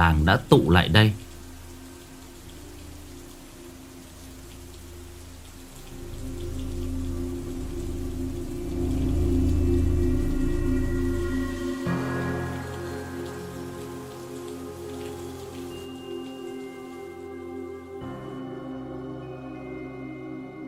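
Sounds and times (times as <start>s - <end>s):
speech: 0.0s - 1.2s
low rumbling undertone: 0.0s - 15.4s
heavy rain pouring at night in a windy storm over a village yard: 0.0s - 20.6s.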